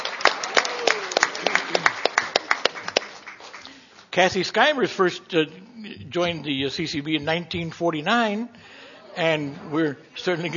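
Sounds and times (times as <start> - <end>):
scattered clapping from a convention audience: 0.0 - 4.1
speech: 4.2 - 10.5.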